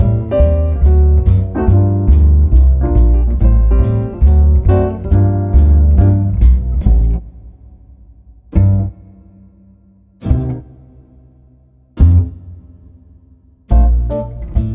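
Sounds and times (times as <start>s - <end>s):
swing jazz drum set trading fours: 0.0s - 7.2s, 8.5s - 8.9s, 13.7s - 14.7s.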